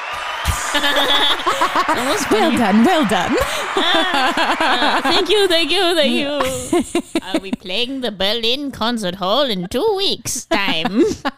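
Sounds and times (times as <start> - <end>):
applause sound effect: 0.0 - 6.4
cheering voices: 0.0 - 6.8
laughter: 0.0 - 7.9, 10.5 - 11.3
speech: 0.1 - 11.3.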